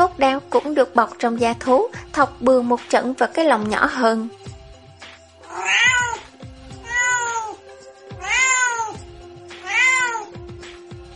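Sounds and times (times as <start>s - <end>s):
speech: 0.2s - 4.4s, 5.6s - 6.0s
kittens mewing in a cage: 5.4s - 7.6s, 8.2s - 9.0s, 9.6s - 10.4s.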